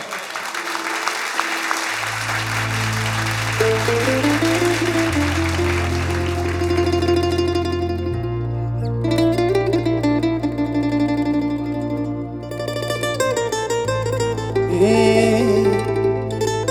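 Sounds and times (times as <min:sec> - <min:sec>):
audience applause at a live music performance: 0:00.0 - 0:08.0
music with deep sustained bass notes and a melody: 0:02.0 - 0:16.6.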